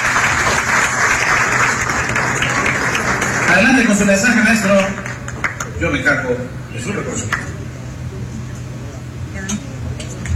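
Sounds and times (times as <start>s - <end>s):
audience applause: 0.0s - 6.1s
speech: 3.6s - 5.1s, 5.8s - 7.6s.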